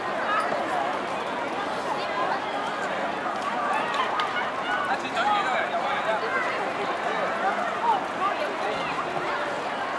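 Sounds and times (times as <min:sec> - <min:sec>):
crowd: 0:00.0 - 0:09.9.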